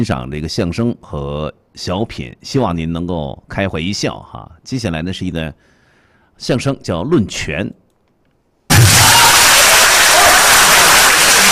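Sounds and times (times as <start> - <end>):
speech: 0.0 - 5.7, 6.4 - 7.8
audience cheering: 8.7 - 11.5
large audience applause: 8.7 - 11.5.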